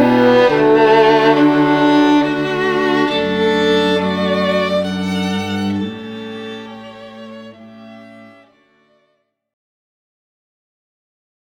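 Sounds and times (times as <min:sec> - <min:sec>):
classical string quartet playing Celtic Americana: 0:00.0 - 0:09.2.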